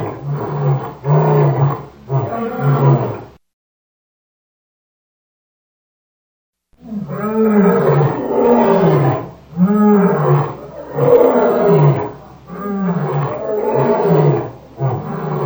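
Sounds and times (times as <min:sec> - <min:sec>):
lion roaring: 0:00.0 - 0:03.4, 0:06.8 - 0:15.4.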